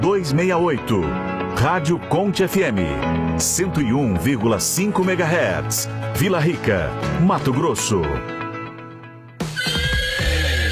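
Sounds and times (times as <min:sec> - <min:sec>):
speech: 0:00.1 - 0:08.4
horse neighing: 0:09.5 - 0:10.6.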